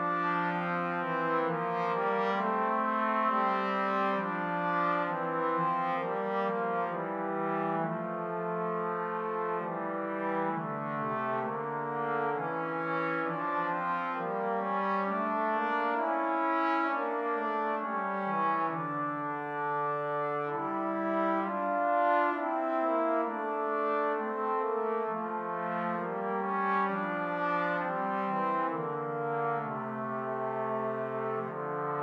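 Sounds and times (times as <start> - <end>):
trombone duet: 0.0 - 32.0.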